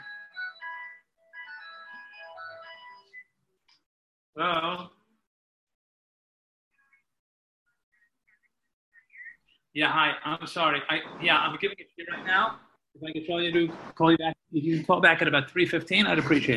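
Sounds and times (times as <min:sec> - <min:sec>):
mobile phone ringtone: 0:00.0 - 0:03.2
speech: 0:04.4 - 0:05.0, 0:09.8 - 0:16.5.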